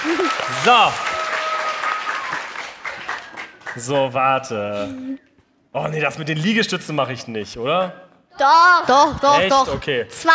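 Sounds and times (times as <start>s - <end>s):
audience applause for a contestant at a party game: 0.0s - 4.4s
speech: 0.6s - 1.0s, 3.8s - 5.2s, 5.8s - 10.3s.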